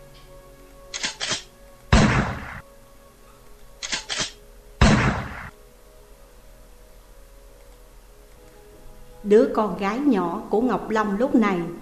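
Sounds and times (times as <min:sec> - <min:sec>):
quick metallic gun clicks: 0:00.9 - 0:01.5, 0:03.8 - 0:04.4
volley of gunfire from many guns fired at once: 0:01.0 - 0:02.6, 0:04.2 - 0:05.5
speech: 0:09.2 - 0:11.8.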